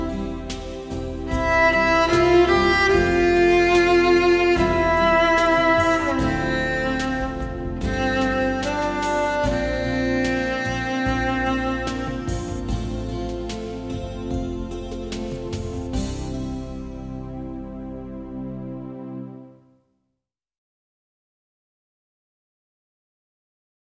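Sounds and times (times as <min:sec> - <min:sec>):
cello: 0:00.0 - 0:17.1.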